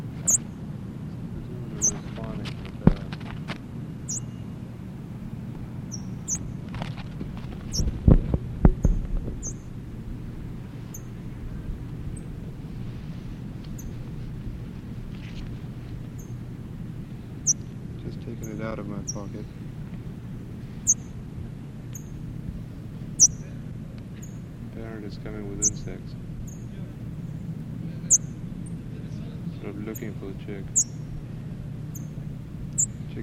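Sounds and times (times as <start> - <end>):
low rumble: 0.0 - 33.2
parrot chick chirping: 0.2 - 0.4, 1.8 - 2.0, 4.1 - 4.5, 5.8 - 6.6, 9.4 - 9.7, 17.4 - 17.7, 23.2 - 23.4, 25.6 - 25.8, 30.7 - 31.0, 31.9 - 33.0.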